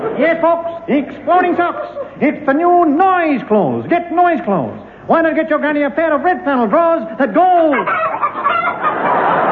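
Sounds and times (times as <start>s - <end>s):
speech: 0.2s - 8.8s
hen cackling: 7.6s - 9.3s.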